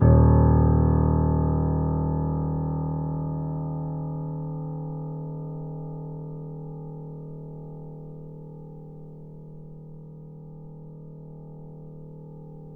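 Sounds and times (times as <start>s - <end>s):
grand piano note D#0 played pianissimo: 0.0s - 5.0s.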